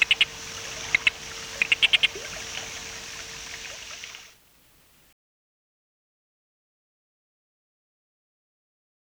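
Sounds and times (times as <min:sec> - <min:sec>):
Taudactylus acutirostris: 0:00.0 - 0:04.4.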